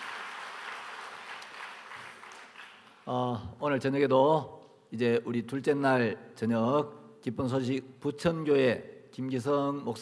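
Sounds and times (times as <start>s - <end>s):
audience applause: 0.0s - 3.0s
speech: 3.1s - 10.0s.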